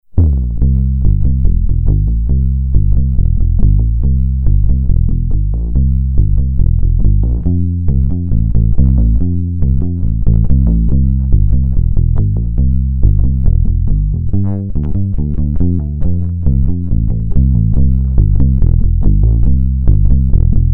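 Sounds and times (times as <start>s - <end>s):
finger-played bass guitar blues: 0.0s - 20.7s.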